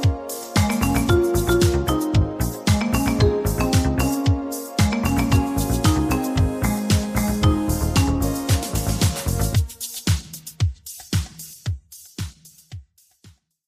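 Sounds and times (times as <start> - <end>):
marimba: 0.0 - 9.6.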